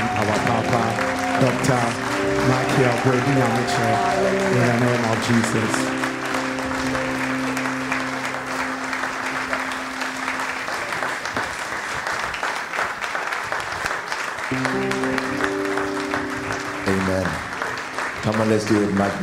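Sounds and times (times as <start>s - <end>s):
church congregation applauding a speaker with a standing ovation: 0.0s - 19.2s
speech: 1.4s - 6.0s, 18.4s - 19.2s.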